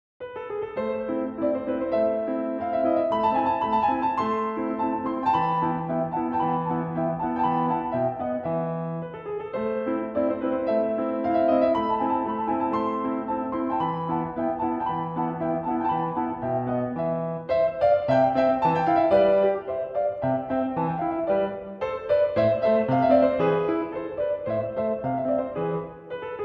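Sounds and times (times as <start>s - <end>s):
piano sonata in A major: 0.2s - 26.4s.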